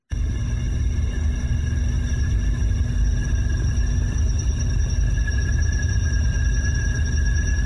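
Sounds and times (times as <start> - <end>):
electrical storm low rumble and hiss on tape: 0.1 - 7.6
thin high-pitched whistling tones: 1.4 - 7.6.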